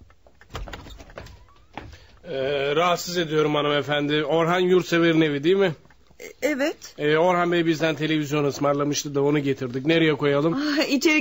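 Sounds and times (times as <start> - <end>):
house door squeak: 0.5 - 2.1
speech: 2.3 - 5.8, 6.5 - 11.1.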